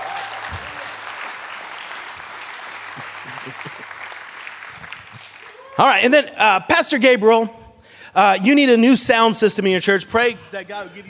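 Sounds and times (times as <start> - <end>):
audience clapping: 0.0 - 5.9
laughter: 2.9 - 4.2, 10.0 - 11.0
speech: 3.4 - 3.8, 5.8 - 7.6, 8.2 - 11.0.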